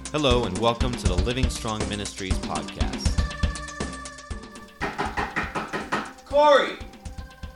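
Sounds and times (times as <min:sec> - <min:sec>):
speech: 0:00.1 - 0:03.2, 0:06.4 - 0:06.9
knocking on a door: 0:04.8 - 0:06.2.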